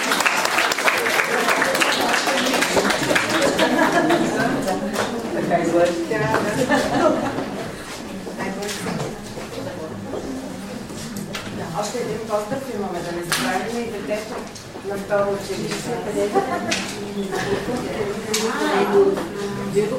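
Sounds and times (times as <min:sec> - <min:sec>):
applause for a school music teacher at a school event: 0:00.0 - 0:05.3
crowd chatter at a school event: 0:00.0 - 0:19.9
laughter: 0:01.0 - 0:08.3, 0:16.0 - 0:19.9
speech: 0:12.0 - 0:19.9.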